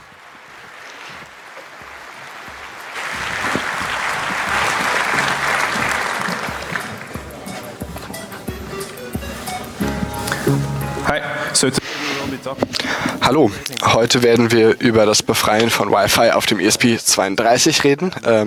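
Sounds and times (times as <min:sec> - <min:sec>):
applause: 0:00.2 - 0:07.7
laughter: 0:03.0 - 0:15.5
speech: 0:11.6 - 0:18.4.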